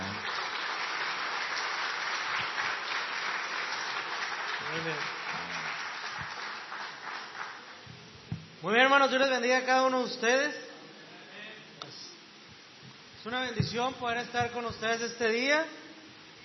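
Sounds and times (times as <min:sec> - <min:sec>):
crowd welcoming applause: 0:00.0 - 0:07.9
speech: 0:04.7 - 0:05.2, 0:08.6 - 0:10.6, 0:13.2 - 0:15.8.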